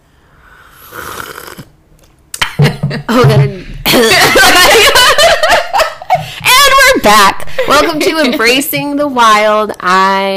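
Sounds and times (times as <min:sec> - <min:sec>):
slurping tea: 0:00.6 - 0:01.8
laughter: 0:02.5 - 0:06.4
speech: 0:03.0 - 0:03.5, 0:07.1 - 0:10.3.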